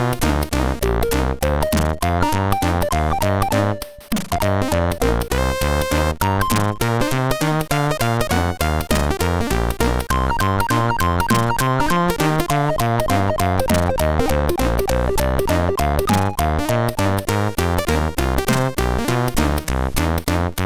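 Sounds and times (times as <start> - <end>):
jazz music on a MOS6581R3 sound chip: 0.0 - 20.6.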